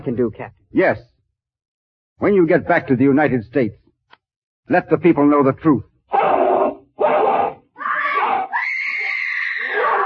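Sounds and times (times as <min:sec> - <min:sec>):
speech: 0:00.0 - 0:01.1, 0:02.2 - 0:03.8, 0:04.7 - 0:05.9
woman screaming while fighting off a dog: 0:06.2 - 0:10.0.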